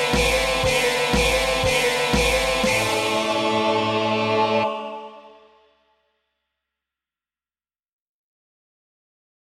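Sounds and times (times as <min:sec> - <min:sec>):
rock music with chorus: 0:00.0 - 0:04.4.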